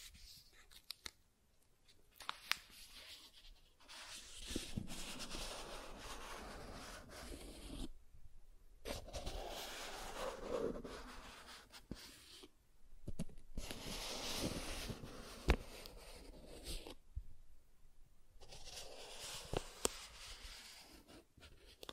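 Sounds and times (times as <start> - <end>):
soft tracing across surfaces: 2.7 - 8.0, 8.9 - 12.5, 13.6 - 17.0, 18.4 - 21.9.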